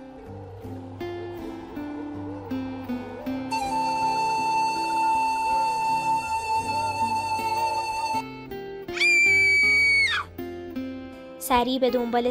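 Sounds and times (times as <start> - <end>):
flute playing: 2.5 - 10.3
person screaming: 8.9 - 10.3
speech: 11.5 - 12.2.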